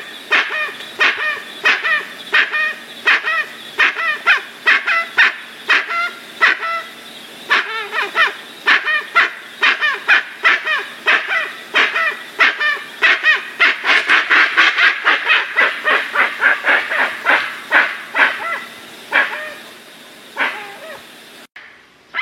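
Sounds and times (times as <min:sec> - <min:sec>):
dusky-legged guan giving rough yelping notes: 0:00.0 - 0:19.8, 0:20.4 - 0:22.2.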